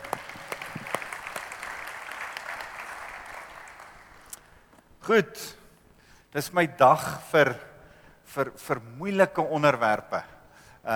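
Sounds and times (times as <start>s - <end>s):
audience applause: 0.0s - 4.3s
speech: 5.1s - 5.6s, 6.3s - 7.7s, 8.3s - 10.9s.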